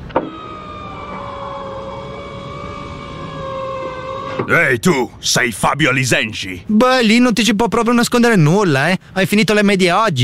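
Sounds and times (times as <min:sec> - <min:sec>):
car pulling up alongside: 0:00.0 - 0:05.1
speech: 0:04.4 - 0:10.2.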